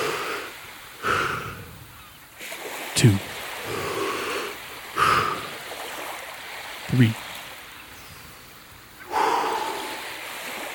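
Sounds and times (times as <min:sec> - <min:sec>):
big deep breath during a workout countdown: 0:00.0 - 0:01.8, 0:03.6 - 0:05.6, 0:09.0 - 0:10.2
speech: 0:03.0 - 0:03.8, 0:06.9 - 0:07.2.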